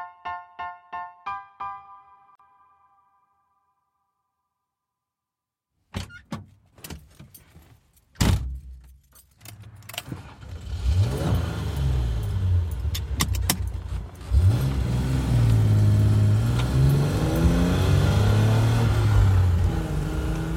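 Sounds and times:
Z car engine droning and revving while driven: 0:10.0 - 0:20.5.

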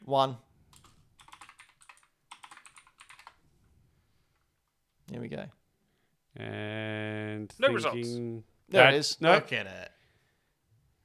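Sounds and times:
speech: 0:00.1 - 0:00.4, 0:05.1 - 0:05.6, 0:06.4 - 0:09.9
computer keyboard typing as a search term is entered: 0:00.7 - 0:03.4.

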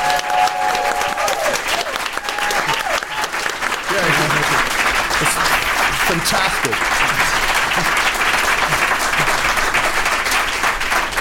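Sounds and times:
voices whooping: 0:00.0 - 0:03.5
crowd applauding: 0:00.0 - 0:11.2
laughter: 0:03.9 - 0:10.1
speech: 0:06.2 - 0:07.1.

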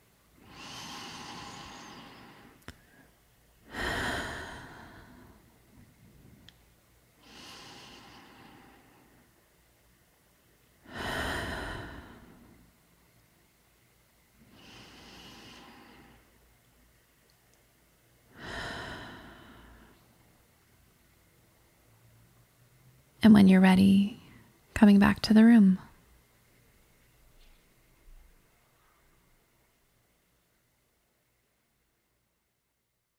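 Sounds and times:
slow deep guided breaths: 0:00.4 - 0:06.6, 0:07.2 - 0:09.4, 0:10.8 - 0:12.8, 0:14.4 - 0:16.4, 0:18.3 - 0:20.2
speech: 0:23.2 - 0:24.1, 0:24.8 - 0:25.8.

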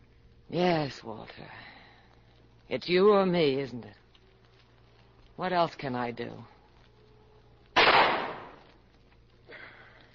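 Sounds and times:
speech: 0:00.5 - 0:01.7, 0:02.7 - 0:04.0, 0:05.4 - 0:06.5
gunshot in a radio drama: 0:07.8 - 0:08.6.

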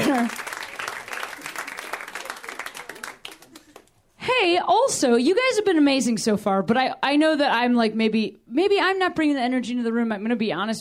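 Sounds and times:
comedy show audience applause: 0:00.0 - 0:04.0
speech: 0:04.5 - 0:10.7.

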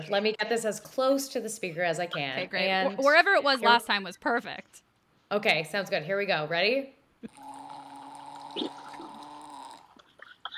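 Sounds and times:
speech: 0:00.0 - 0:07.5, 0:08.5 - 0:08.8
wine poured through an aerator: 0:07.3 - 0:10.1.

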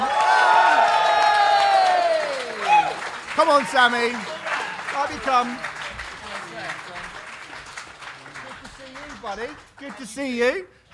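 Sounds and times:
person holding a long whoop: 0:00.0 - 0:03.0
audience cheering and applauding: 0:00.0 - 0:10.4
speech: 0:03.4 - 0:04.3, 0:05.0 - 0:05.7, 0:09.3 - 0:10.8.

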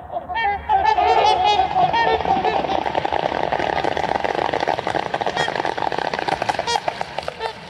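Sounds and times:
flock of trumpeter swans honking taking off from water: 0:00.0 - 0:03.0, 0:06.6 - 0:07.6
water splashing and rushing as trumpeter swans take off: 0:01.0 - 0:07.6.

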